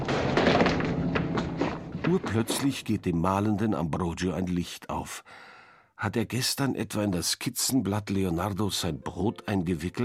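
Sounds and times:
thuds and knocks of someone stumbling over a fiddle: 0.0s - 2.8s
speech: 2.1s - 10.0s.

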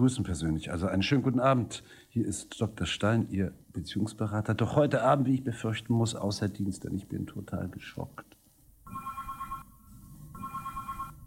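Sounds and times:
speech: 0.0s - 8.4s
telephone ringing with an incoming call to a radio studio: 8.9s - 11.2s.

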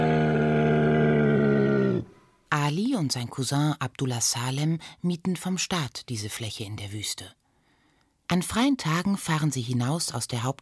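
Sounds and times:
dromedary groaning: 0.0s - 2.1s
speech: 2.7s - 7.4s, 8.3s - 10.6s.

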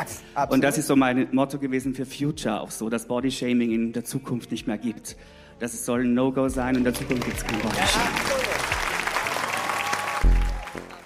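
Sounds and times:
speech: 0.4s - 8.4s
applause: 6.7s - 11.0s.

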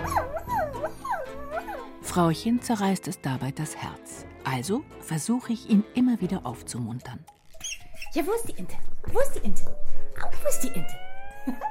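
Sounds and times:
dog whimpering mournfully: 0.0s - 2.0s, 10.3s - 11.6s
speech: 2.1s - 7.4s, 8.1s - 11.6s
laughter: 11.3s - 11.6s.

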